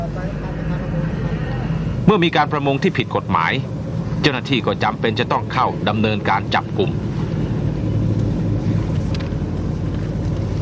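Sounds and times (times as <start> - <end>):
fishing boat engine droning: 0.0 - 10.6
speech: 2.1 - 7.2.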